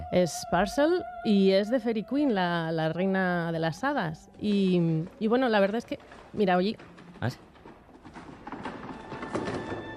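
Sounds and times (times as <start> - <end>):
speech: 0.1 - 7.5
chairs being shoved and dragged across a stage floor: 4.8 - 9.9.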